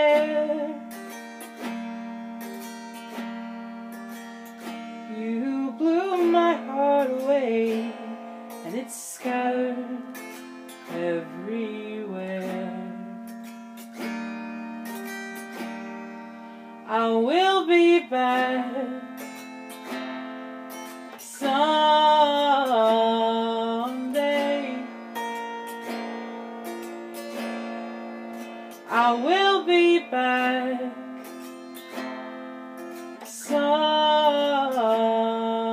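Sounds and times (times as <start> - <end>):
person singing an original song: 0.0 - 1.8, 4.9 - 13.3, 16.8 - 19.4, 21.1 - 26.3, 28.7 - 32.0, 33.0 - 35.7
autoharp: 0.0 - 35.7.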